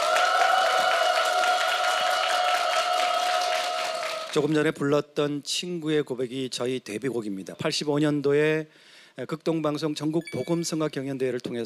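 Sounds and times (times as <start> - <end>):
audience applause: 0.0 - 4.6
speech: 4.4 - 11.6.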